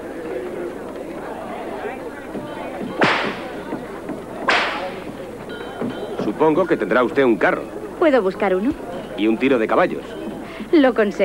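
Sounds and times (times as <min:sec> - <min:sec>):
murmuring crowd chatter: 0:00.0 - 0:11.2
whip cracks: 0:03.0 - 0:03.5, 0:04.5 - 0:05.0
speech: 0:06.4 - 0:11.2.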